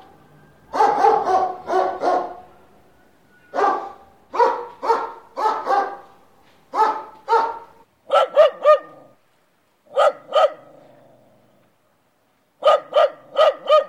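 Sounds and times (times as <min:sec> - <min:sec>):
dog barking: 0:00.7 - 0:02.5, 0:03.5 - 0:06.1, 0:06.7 - 0:09.2, 0:09.9 - 0:11.0, 0:12.6 - 0:13.8.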